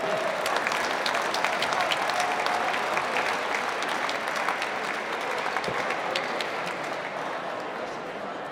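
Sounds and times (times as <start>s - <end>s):
audience applause at an open-house event: 0.0s - 8.4s.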